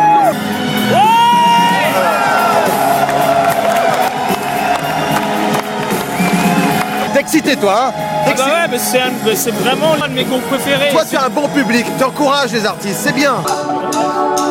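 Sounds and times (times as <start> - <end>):
concert audience applause: 0.9 - 9.8
speech: 7.6 - 14.2.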